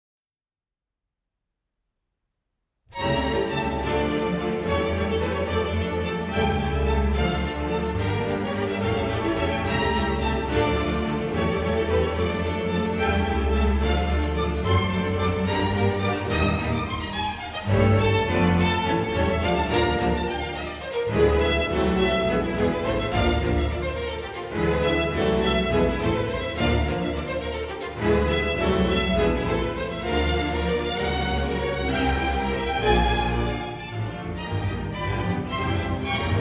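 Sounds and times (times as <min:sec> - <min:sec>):
string orchestra allegro in D minor: 0:03.0 - 0:36.3.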